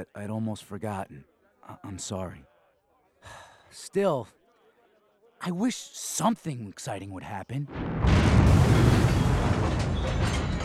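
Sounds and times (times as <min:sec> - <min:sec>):
speech: 0:00.0 - 0:02.5, 0:03.2 - 0:04.4, 0:05.4 - 0:08.9
palace explosion roaring rumble: 0:07.7 - 0:10.6.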